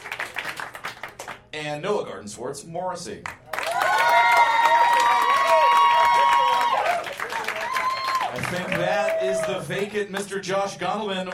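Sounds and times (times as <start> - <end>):
audience applause: 0.0 - 1.4, 3.5 - 10.0
speech: 1.5 - 4.0, 8.4 - 11.3.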